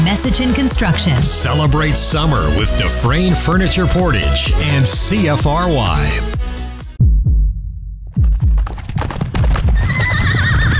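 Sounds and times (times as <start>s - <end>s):
speech: 0.2s - 6.5s
heavy horse hooves clip-clopping: 8.2s - 10.7s
horse whinnying: 9.7s - 10.7s.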